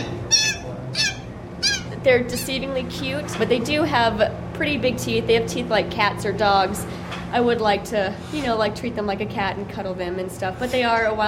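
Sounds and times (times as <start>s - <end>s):
Asian small-clawed otter squeaking: 0.0s - 2.6s
speech: 2.0s - 11.2s.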